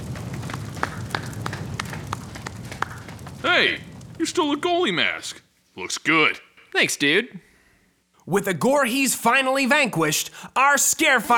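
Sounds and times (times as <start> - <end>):
low rumbling background: 0.0 - 5.2
steady hand clapping: 0.5 - 3.0
speech: 3.5 - 7.5, 8.3 - 11.3.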